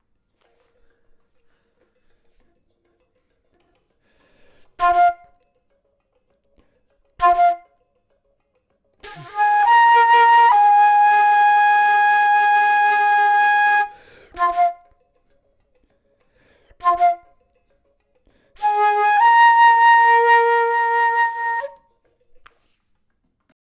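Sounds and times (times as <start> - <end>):
flute: 4.8 - 5.6, 7.2 - 7.9, 9.0 - 15.1, 16.7 - 17.6, 18.6 - 21.9.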